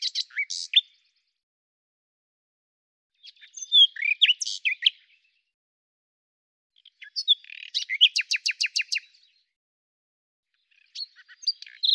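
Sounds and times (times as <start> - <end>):
common nightingale singing: 0.0 - 1.0, 3.2 - 5.2, 6.8 - 9.4, 10.7 - 11.9.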